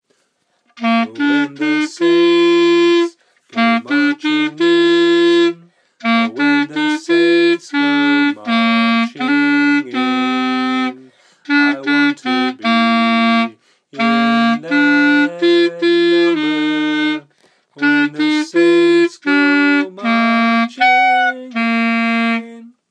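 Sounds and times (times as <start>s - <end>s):
clarinet practice: 0.7s - 22.8s.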